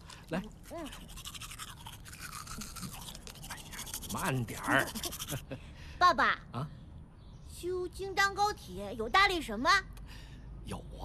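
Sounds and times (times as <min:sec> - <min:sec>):
speech: 0:00.3 - 0:01.4, 0:04.1 - 0:06.8, 0:07.6 - 0:09.9, 0:10.7 - 0:11.0
brushing teeth with a toothbrush: 0:00.7 - 0:05.4.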